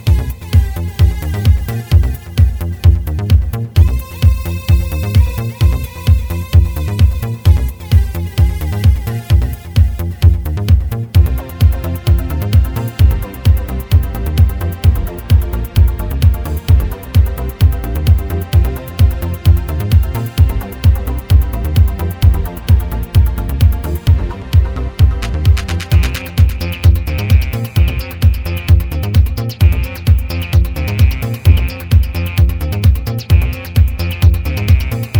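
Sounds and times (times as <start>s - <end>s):
bass: 0.0s - 35.1s.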